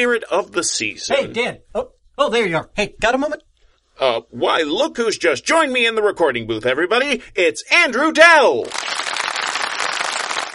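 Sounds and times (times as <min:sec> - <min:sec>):
speech: 0:00.0 - 0:09.0
applause sound effect: 0:08.6 - 0:10.5.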